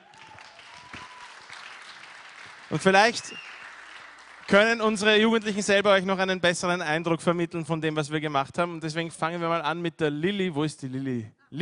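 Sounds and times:
audience applause: 0.0 - 5.5
speech: 2.7 - 3.5, 4.5 - 11.5.

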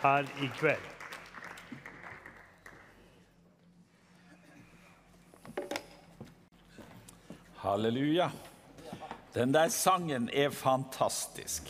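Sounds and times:
speech: 0.0 - 1.0, 7.6 - 8.5, 9.3 - 11.6
audience applause: 0.0 - 3.2.

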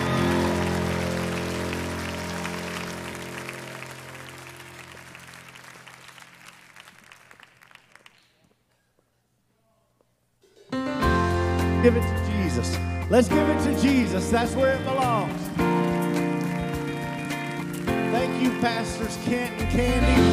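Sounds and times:
crowd applauding: 0.0 - 8.5, 14.7 - 19.8
speech: 11.8 - 15.7, 18.4 - 20.3.

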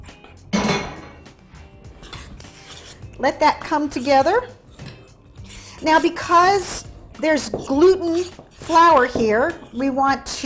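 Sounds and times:
utensil clinking against a bowl: 2.1 - 10.4
speech: 3.2 - 4.6, 5.8 - 10.4.

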